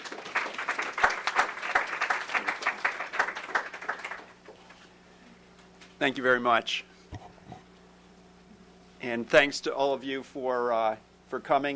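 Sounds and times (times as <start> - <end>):
audience applause: 0.0 - 4.7
speech: 6.0 - 6.9, 9.0 - 11.7.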